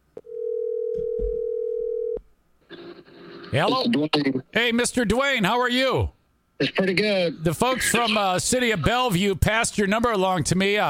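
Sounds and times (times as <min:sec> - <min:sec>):
telephone dial tone while calling someone: 0:00.2 - 0:02.2
speech: 0:03.5 - 0:10.8.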